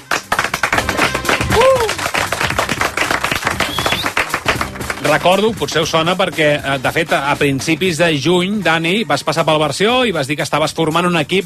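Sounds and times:
applause: 0.0 - 5.5
speech: 5.1 - 11.4.

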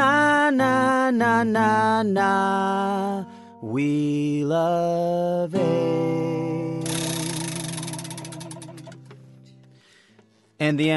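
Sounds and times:
speech: 0.6 - 6.4, 10.6 - 10.9
prize wheel spinning: 6.8 - 9.2.

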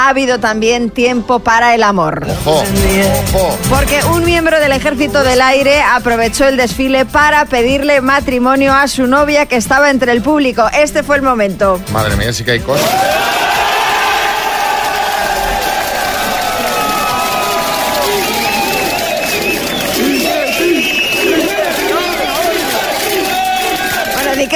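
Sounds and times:
speech: 0.0 - 13.6
comrades shouting encouragement at marriage proposal: 12.8 - 24.5.

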